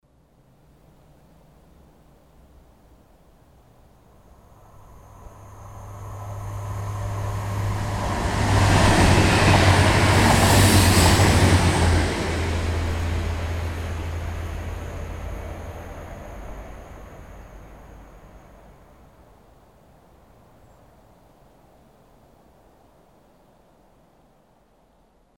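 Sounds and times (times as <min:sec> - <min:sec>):
train passing: 0:04.1 - 0:20.4.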